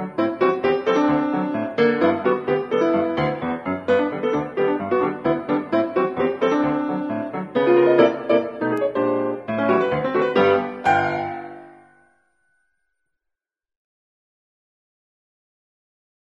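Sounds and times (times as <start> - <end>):
ragtime music: 0.0 - 11.9.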